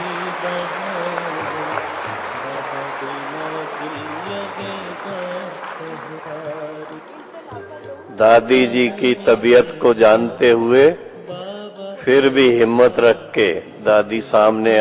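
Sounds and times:
audience clapping: 0.0s - 9.2s
speech: 8.2s - 11.0s, 12.0s - 14.8s.

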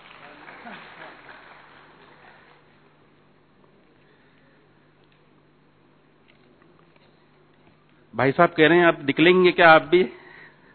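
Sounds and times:
audience applause at a spiritual talk: 0.0s - 2.5s
speech: 8.2s - 10.2s.

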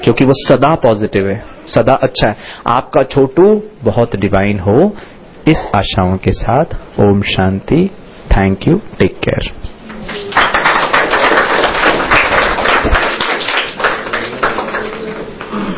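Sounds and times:
speech: 0.0s - 10.5s
hand clapping: 9.9s - 15.6s.

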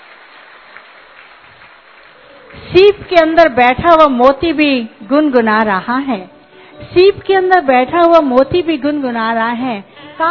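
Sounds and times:
applause for a grandmother at a celebration: 0.0s - 3.9s
speech: 2.7s - 10.2s.

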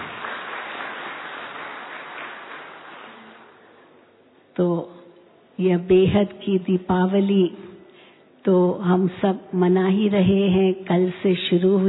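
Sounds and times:
audience clapping: 0.0s - 3.8s
speech: 4.6s - 5.0s, 5.6s - 7.7s, 8.4s - 11.8s.

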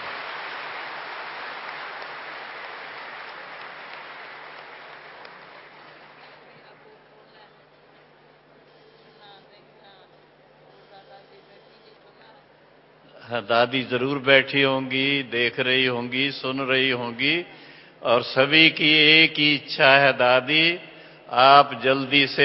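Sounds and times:
audience clapping in thanks: 0.0s - 6.8s
speech: 13.3s - 22.4s.

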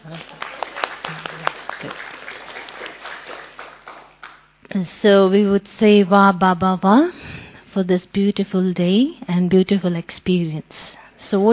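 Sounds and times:
audience applause: 0.0s - 4.4s
speech: 4.8s - 7.2s, 7.8s - 11.5s.

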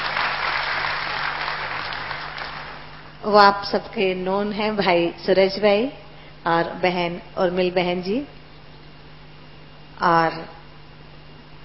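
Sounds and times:
audience applause welcoming panelists at a panel discussion: 0.0s - 3.0s
speech: 3.2s - 8.4s, 10.0s - 10.6s.

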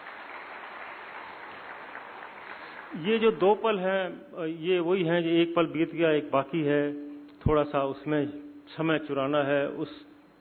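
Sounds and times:
audience clapping at a Hindi talk: 0.0s - 3.4s
speech: 2.9s - 10.1s.

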